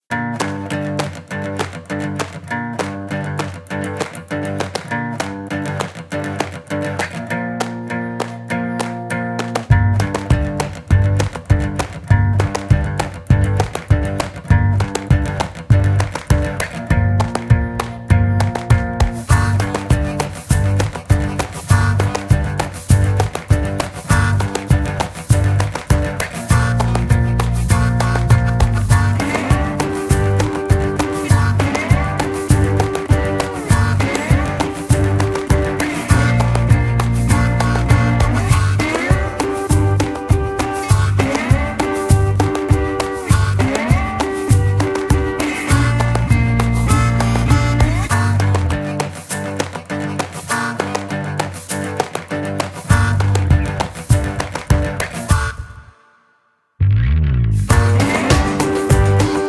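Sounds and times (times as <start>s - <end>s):
country music: 0.1s - 55.8s, 57.0s - 59.4s.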